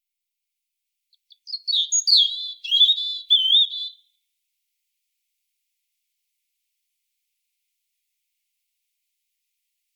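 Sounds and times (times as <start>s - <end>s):
European robin song: 1.1s - 4.0s.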